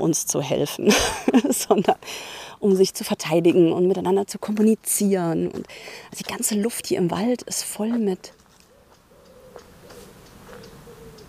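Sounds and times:
steady hiss: 0:00.0 - 0:06.6, 0:07.4 - 0:11.2
speech: 0:00.0 - 0:08.4
pigeon cooing in a forest: 0:08.6 - 0:11.2.

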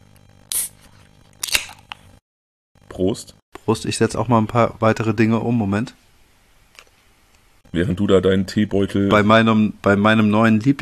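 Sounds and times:
drink being opened: 0:01.4 - 0:02.0
speech: 0:03.0 - 0:06.0, 0:07.7 - 0:10.8.

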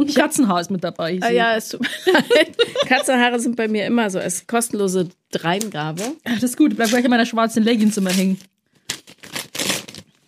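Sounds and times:
speech: 0:00.0 - 0:08.5
laughter: 0:01.8 - 0:03.4
gift wrapping paper being torn open: 0:06.8 - 0:10.2.

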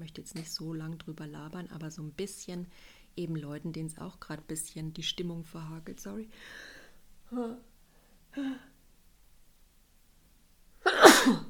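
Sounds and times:
speech: 0:00.0 - 0:06.7, 0:07.3 - 0:07.7, 0:08.3 - 0:08.7, 0:11.2 - 0:11.4
person sneezing from hay fever: 0:10.8 - 0:11.4.

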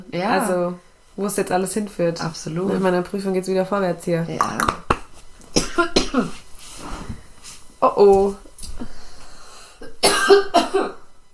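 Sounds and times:
speech: 0:00.1 - 0:04.8, 0:05.8 - 0:06.4, 0:07.8 - 0:08.9, 0:10.3 - 0:11.0
small cough: 0:05.5 - 0:06.5, 0:09.8 - 0:11.1.

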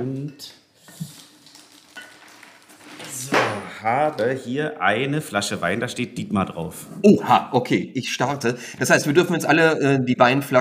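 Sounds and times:
speech: 0:00.0 - 0:01.1, 0:03.2 - 0:10.6
hand rummaging through ice cubes in a bucket: 0:01.1 - 0:03.2.

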